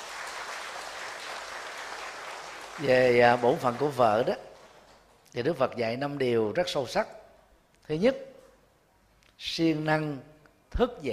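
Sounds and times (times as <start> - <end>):
audience applause at a wedding gathering: 0.0 - 5.0
speech: 2.8 - 4.5, 5.3 - 7.2, 7.9 - 8.3, 9.4 - 11.1.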